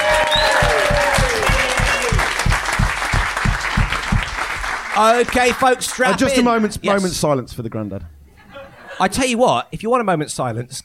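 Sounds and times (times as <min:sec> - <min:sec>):
audience applauding and cheering a contestant on a quiz show: 0:00.0 - 0:06.2
steady thumping beat: 0:00.2 - 0:04.8
speech: 0:05.0 - 0:08.2, 0:09.0 - 0:10.8
laughter: 0:08.3 - 0:09.4.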